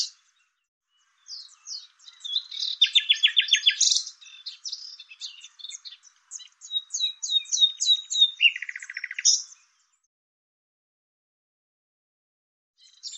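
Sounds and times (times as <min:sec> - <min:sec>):
thin high bird chirps: 0:00.0 - 0:10.1, 0:12.8 - 0:13.1.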